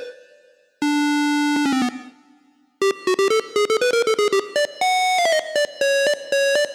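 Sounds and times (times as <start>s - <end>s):
silly march melody: 0.9s - 6.7s.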